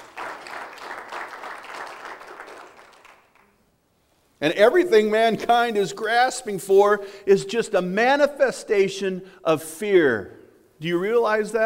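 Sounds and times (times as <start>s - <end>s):
audience clapping: 0.0s - 3.7s
speech: 4.4s - 11.6s.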